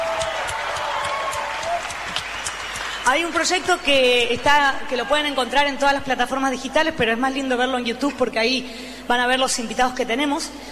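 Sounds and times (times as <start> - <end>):
audience applause: 0.0 - 3.7
speech: 3.1 - 10.7.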